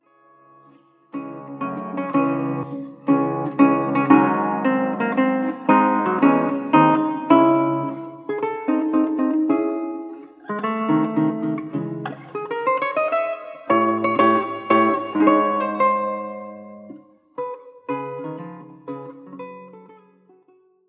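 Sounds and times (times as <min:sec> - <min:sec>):
allegro music piece: 0:00.6 - 0:20.2.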